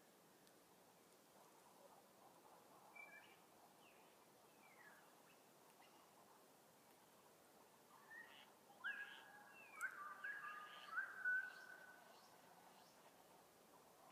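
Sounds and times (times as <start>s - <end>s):
faint bird chirps: 2.7s - 6.3s, 7.9s - 13.2s.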